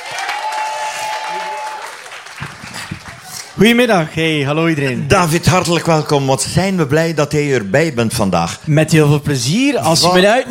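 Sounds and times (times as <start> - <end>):
crowd thunderous applause: 0.0 - 4.4
speech: 3.6 - 10.4.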